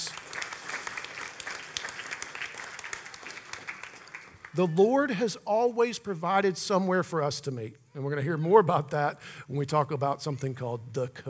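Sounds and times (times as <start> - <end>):
audience applause: 0.0 - 5.1
speech: 4.5 - 11.2.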